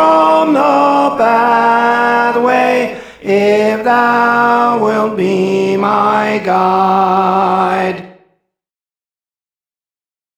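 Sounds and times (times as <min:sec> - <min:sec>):
tenor singing songs: 0:00.0 - 0:08.2.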